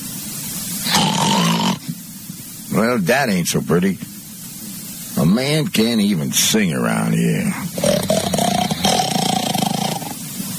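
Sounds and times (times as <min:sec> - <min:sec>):
snoring: 0:00.8 - 0:01.9, 0:07.7 - 0:10.2
speech: 0:02.8 - 0:04.1, 0:05.2 - 0:08.4.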